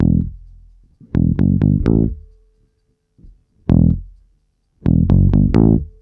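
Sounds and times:
disco bass line: 0:00.0 - 0:02.2, 0:03.7 - 0:04.2, 0:04.8 - 0:05.9.

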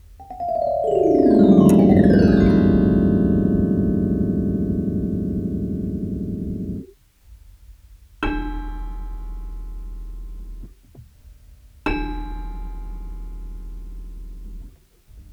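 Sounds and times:
Rhodes electric piano effects: 0:00.2 - 0:06.8.

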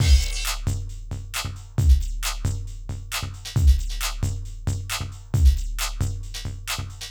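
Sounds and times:
percussion: 0:00.0 - 0:07.0.

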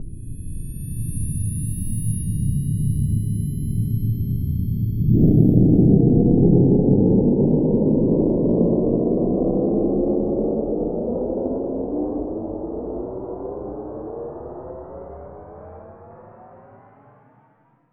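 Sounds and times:
jet plane: 0:00.0 - 0:17.4.

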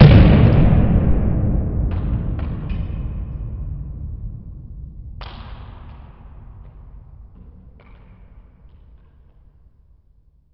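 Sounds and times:
impact sound effects: 0:00.0 - 0:07.5.

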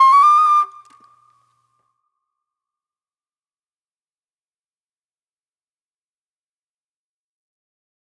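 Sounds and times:
sweet soul flute: 0:00.0 - 0:01.2.

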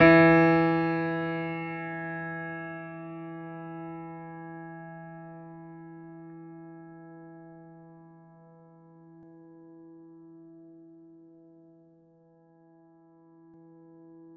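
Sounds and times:
classical piano E3 note: 0:00.0 - 0:05.7.

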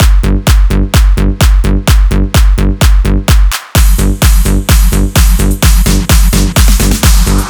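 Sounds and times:
drum loop at 128 BPM in G: 0:00.0 - 0:07.4.

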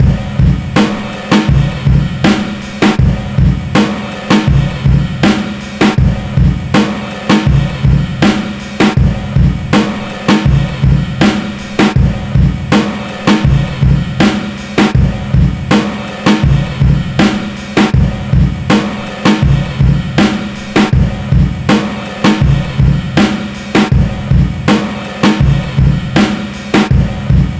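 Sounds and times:
breakbeat: 0:00.0 - 0:27.5.

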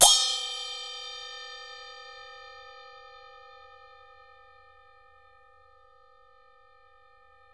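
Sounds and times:
hsiao chin Chinese cymbals: 0:00.0 - 0:03.9.

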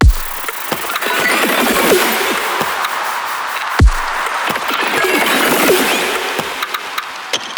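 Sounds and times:
dirty drum beat: 0:00.0 - 0:06.7.

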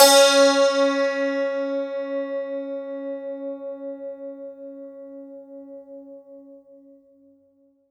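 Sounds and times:
santoor: 0:00.0 - 0:03.4.

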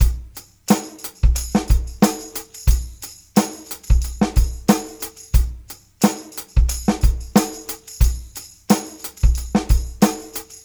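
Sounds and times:
R&B drums: 0:00.0 - 0:10.6.

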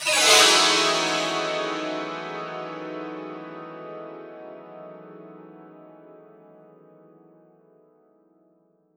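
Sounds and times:
santoor effect: 0:00.0 - 0:03.7.

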